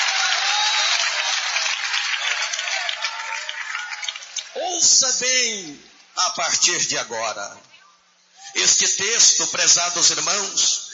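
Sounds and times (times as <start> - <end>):
audience applauding: 0.0 - 4.7
speech: 5.0 - 7.7, 8.5 - 10.8.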